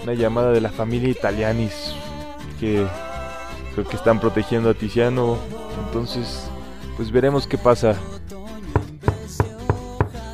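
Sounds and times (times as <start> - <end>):
speech: 0.0 - 3.0, 3.8 - 8.2
knocking on a door: 8.8 - 10.2.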